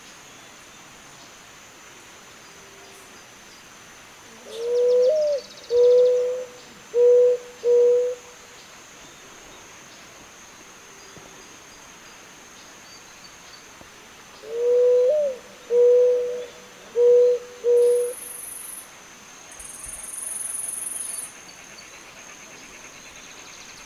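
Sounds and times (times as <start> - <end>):
Zenaida dove giving low even coos: 4.4 - 8.2, 14.4 - 18.2.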